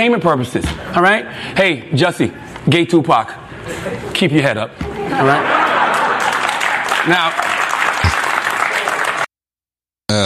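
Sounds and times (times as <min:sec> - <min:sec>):
speech: 0:00.0 - 0:05.7, 0:07.1 - 0:07.6
laughter: 0:03.6 - 0:07.3
crowd applause and cheering: 0:05.1 - 0:09.3.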